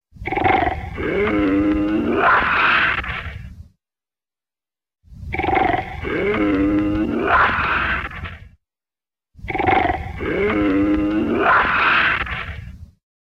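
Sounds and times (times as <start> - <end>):
roar: 0.2 - 3.5, 5.1 - 8.6, 9.4 - 12.8.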